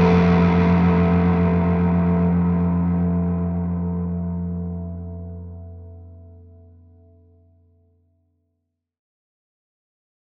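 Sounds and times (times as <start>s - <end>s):
Les Paul electric guitar with superwide fuzz: 0.0s - 6.6s.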